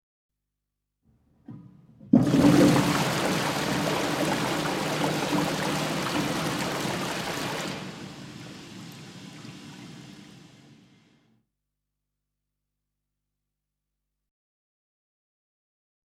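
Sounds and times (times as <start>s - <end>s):
toilet flushing: 1.4s - 11.2s.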